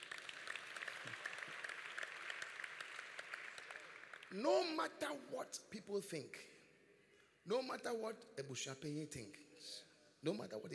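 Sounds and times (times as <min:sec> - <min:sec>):
audience clapping: 0:00.0 - 0:04.9
speech: 0:04.3 - 0:06.5, 0:07.4 - 0:10.7.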